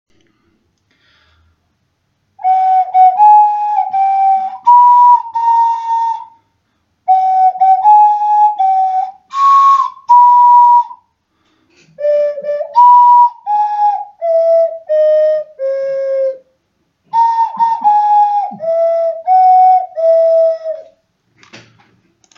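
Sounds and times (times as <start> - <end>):
birthday song on ocarina: 2.4 - 6.4, 7.1 - 11.1, 11.8 - 16.5, 17.1 - 21.0.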